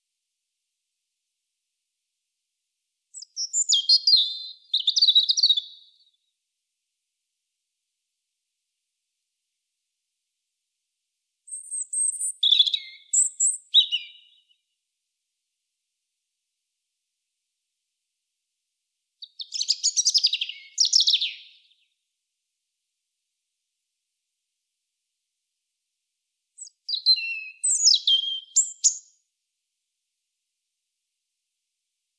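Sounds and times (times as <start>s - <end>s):
European robin singing: 3.1s - 6.2s, 11.5s - 14.6s, 19.2s - 21.8s, 26.6s - 29.2s.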